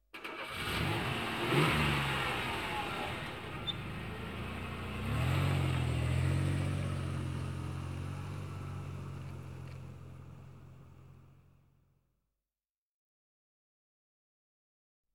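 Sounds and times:
car starting and driving away: 0.1 - 11.6.

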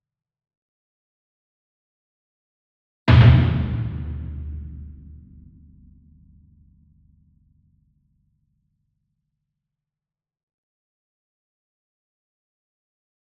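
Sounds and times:
40 inch concert bass drum hit with double soft beater, far: 3.1 - 5.6.

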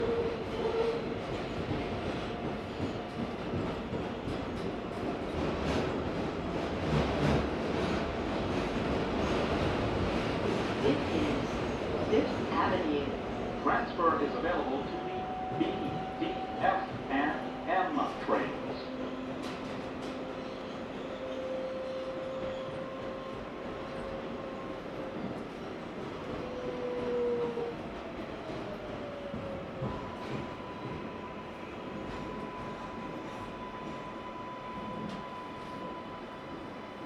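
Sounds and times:
empty NYC subway train interior riding between stations: 0.0 - 37.0.

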